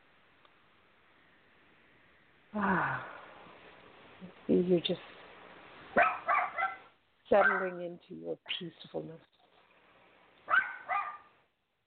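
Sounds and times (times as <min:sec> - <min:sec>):
speech: 0:02.5 - 0:03.1, 0:04.2 - 0:05.2, 0:07.3 - 0:09.3
dog barking: 0:06.0 - 0:07.8, 0:10.5 - 0:11.4.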